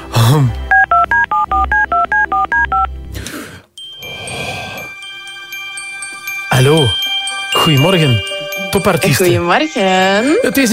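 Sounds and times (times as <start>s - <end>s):
speech: 0.3s - 0.6s, 7.8s - 10.7s
telephone number being dialed, DTMF tones: 0.7s - 2.9s.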